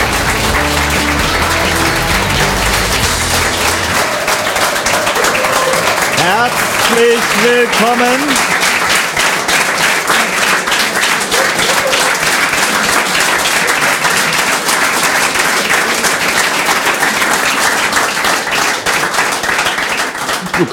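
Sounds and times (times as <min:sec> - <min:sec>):
audience applause in the Schillergarten: 0:00.0 - 0:20.7
speech: 0:06.3 - 0:08.4.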